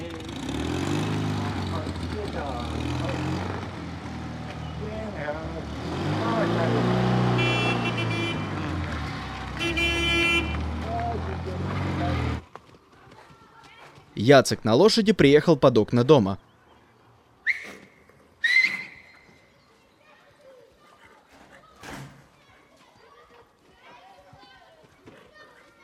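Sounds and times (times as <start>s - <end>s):
car driving away: 0.0s - 12.4s
speech: 14.3s - 16.5s.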